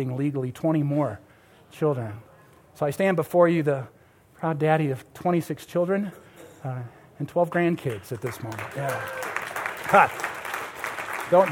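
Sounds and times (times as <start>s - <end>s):
speech: 0.0s - 9.2s, 9.9s - 10.3s, 11.3s - 11.5s
audience applause at a speech: 7.9s - 11.5s.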